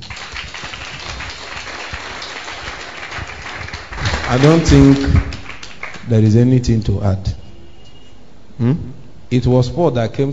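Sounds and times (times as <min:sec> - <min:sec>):
crowd clapping: 0:00.0 - 0:06.3
speech: 0:04.3 - 0:05.2, 0:06.1 - 0:07.4, 0:08.6 - 0:10.3.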